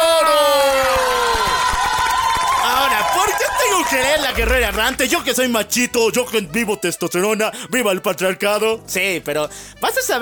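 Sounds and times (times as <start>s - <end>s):
audience applause and cheering: 0.0s - 5.3s
speech: 3.9s - 10.2s.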